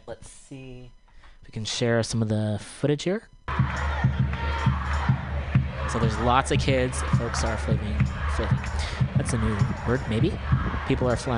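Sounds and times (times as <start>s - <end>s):
speech: 0.1s - 4.2s, 5.9s - 11.3s
big crowd shouting rehire in protest: 3.5s - 11.3s.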